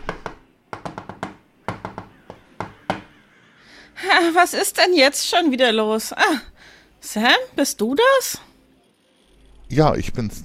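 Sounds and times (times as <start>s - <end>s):
energetic knocking on a locked shop door: 0.0s - 3.2s
speech: 3.9s - 8.4s, 9.8s - 10.4s.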